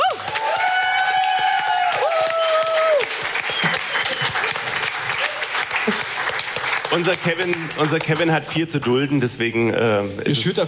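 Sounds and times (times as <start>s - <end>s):
audience cheers: 0.0s - 6.0s
audience applause: 0.0s - 8.4s
audience whistles: 3.4s - 4.6s
speech: 7.0s - 10.6s.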